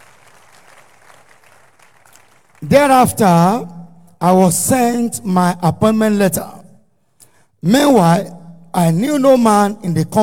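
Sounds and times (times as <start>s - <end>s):
audience clapping: 0.0s - 2.7s
speech: 2.6s - 6.6s, 7.6s - 10.2s.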